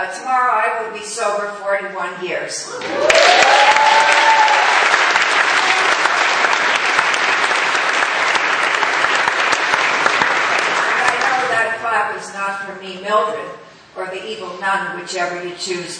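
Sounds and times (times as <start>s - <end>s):
speech: 0.0s - 4.4s, 12.2s - 15.9s
audience applause: 2.8s - 11.8s.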